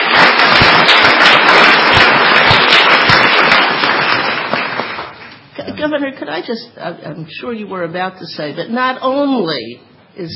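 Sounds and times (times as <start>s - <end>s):
audience applause: 0.0s - 5.4s
speech: 5.8s - 10.3s.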